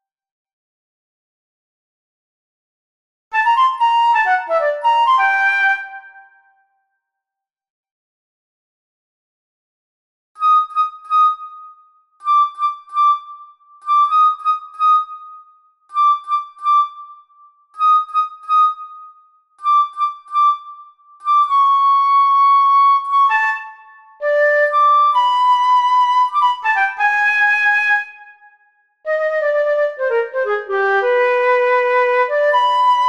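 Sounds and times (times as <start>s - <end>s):
transverse flute: 3.3s - 6.8s, 10.4s - 33.0s.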